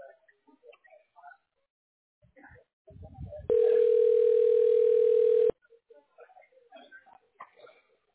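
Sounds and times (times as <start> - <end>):
telephone ringing tone on the line: 3.5 - 5.5.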